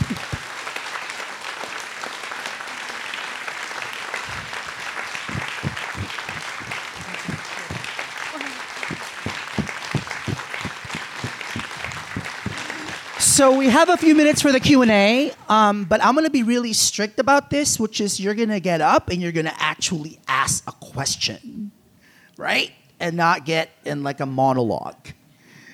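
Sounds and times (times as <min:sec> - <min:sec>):
audience applause: 0:00.0 - 0:14.9
speech: 0:13.4 - 0:21.5, 0:22.4 - 0:25.2.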